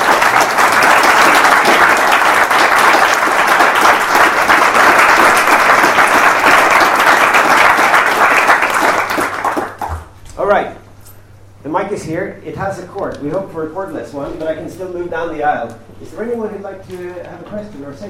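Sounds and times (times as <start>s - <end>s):
audience applause: 0.0s - 10.2s
speech: 11.9s - 18.0s.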